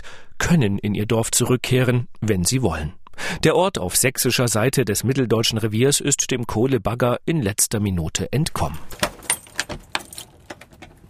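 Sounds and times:
speech: 0:00.5 - 0:09.1
keys jingling: 0:08.9 - 0:11.0
village church door lock clicks and clunks: 0:08.9 - 0:11.0.

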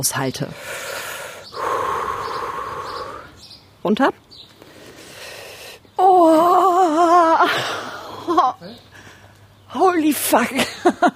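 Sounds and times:
speech: 0:00.0 - 0:01.0, 0:03.8 - 0:04.2, 0:06.2 - 0:08.9, 0:09.7 - 0:11.1
deep breath before standing on a bed of nails: 0:00.6 - 0:03.4, 0:04.6 - 0:05.8.

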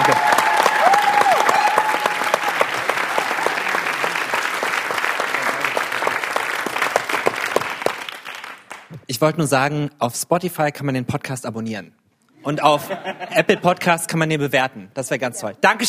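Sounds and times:
audience applause: 0:00.0 - 0:09.0
speech: 0:09.2 - 0:15.8
laughter: 0:12.4 - 0:13.8.

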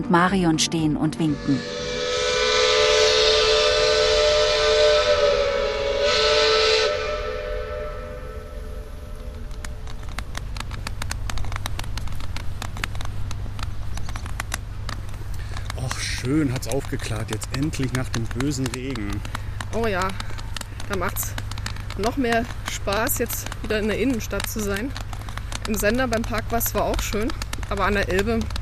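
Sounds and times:
speech: 0:00.0 - 0:02.0, 0:16.3 - 0:21.4, 0:22.0 - 0:25.0, 0:25.6 - 0:28.6
paddle steamer steam whistle as it departs: 0:01.3 - 0:09.8
paddle steamer paddle wheels chugging and splashing: 0:09.6 - 0:28.6.

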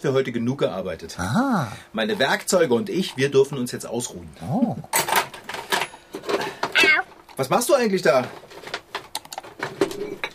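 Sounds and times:
speech: 0:00.0 - 0:05.1, 0:07.4 - 0:08.4
cat meowing: 0:06.8 - 0:07.1.

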